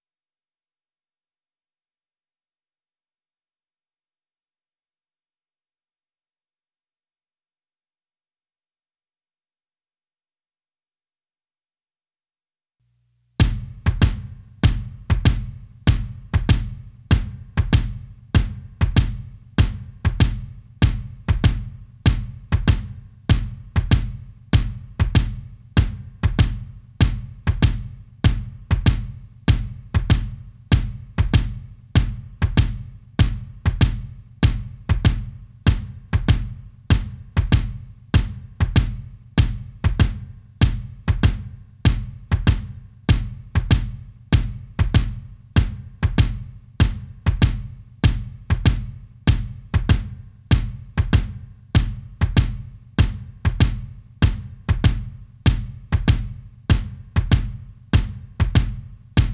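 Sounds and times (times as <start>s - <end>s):
drums: 13.4s - 59.3s.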